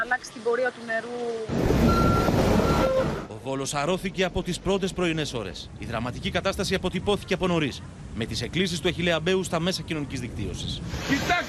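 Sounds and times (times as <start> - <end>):
speech: 0.1 - 11.4
grader's heavy diesel engine rumbling: 1.5 - 11.4
grader reversing beeps: 1.8 - 3.3.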